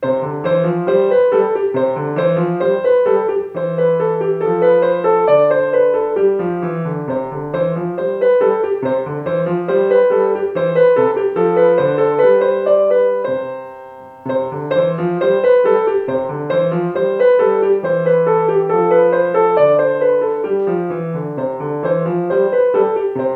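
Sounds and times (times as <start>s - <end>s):
gavotte music: 0.0s - 23.3s.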